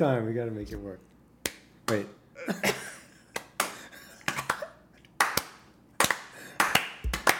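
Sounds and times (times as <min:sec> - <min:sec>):
speech: 0:00.0 - 0:01.1, 0:01.9 - 0:02.8
group hand claps trying to synchronize: 0:03.3 - 0:07.3.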